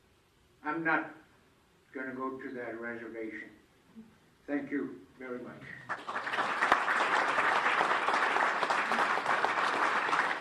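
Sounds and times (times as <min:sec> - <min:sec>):
speech: 0:00.6 - 0:01.2, 0:02.0 - 0:06.5
standing applause from 2012 Arctic Imperative Summit attendees: 0:05.8 - 0:10.3.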